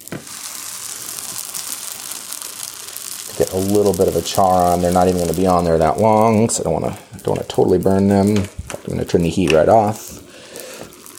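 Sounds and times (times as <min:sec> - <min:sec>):
sourdough bread sizzling dry on a hot grill pan: 0:00.0 - 0:11.1
speech: 0:03.4 - 0:10.2.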